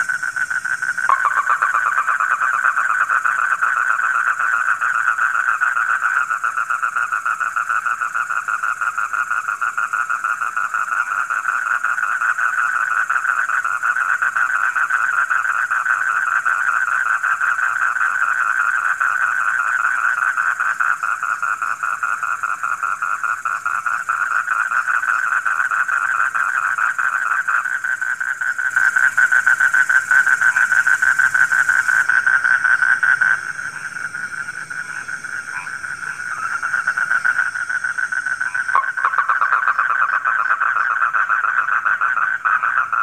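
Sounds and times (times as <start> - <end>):
faint high hiss: 0.0 - 4.7, 21.0 - 43.0
frogs calling in a dense chorus of pulsed notes: 0.0 - 43.0.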